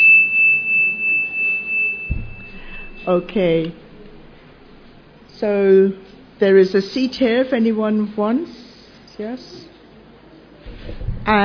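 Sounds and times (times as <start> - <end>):
chime: 0.0 - 4.1
speech: 3.1 - 3.8, 5.4 - 8.6, 9.2 - 9.7, 11.2 - 11.4.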